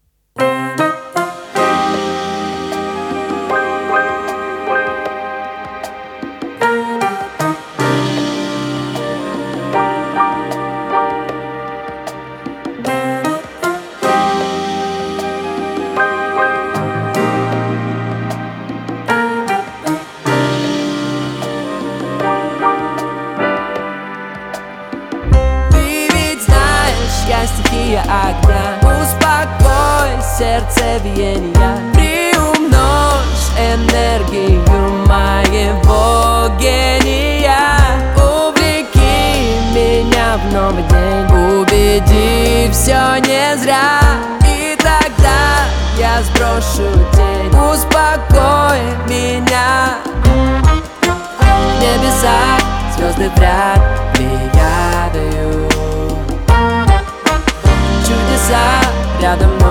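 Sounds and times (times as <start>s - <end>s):
soft ambient jazz relaxation music: 0.4s - 59.6s.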